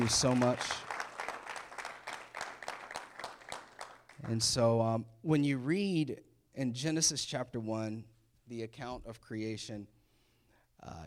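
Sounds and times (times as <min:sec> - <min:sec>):
speech: 0:00.0 - 0:00.9, 0:04.3 - 0:10.0, 0:10.8 - 0:11.0
church congregation applause welcoming a first-time guest: 0:00.0 - 0:04.6.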